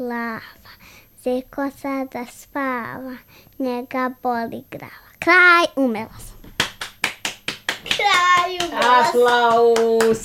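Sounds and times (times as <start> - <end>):
child's voice: 0.0 - 0.6, 1.2 - 6.3, 8.0 - 9.7
speech: 0.0 - 6.4, 7.8 - 10.2
hand claps applauding a child's song: 6.4 - 10.2.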